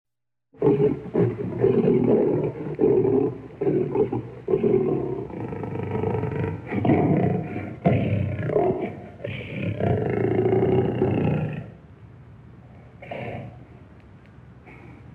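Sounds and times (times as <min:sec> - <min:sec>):
lion roaring: 0:00.6 - 0:11.8, 0:13.0 - 0:13.6.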